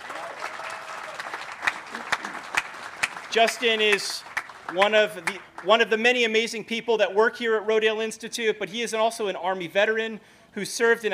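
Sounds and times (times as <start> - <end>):
audience applause: 0.0 - 5.8
speech: 3.3 - 11.1.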